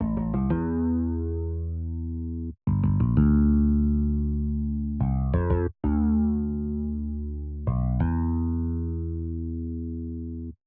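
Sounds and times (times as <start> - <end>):
bass line: 0.0 - 10.6.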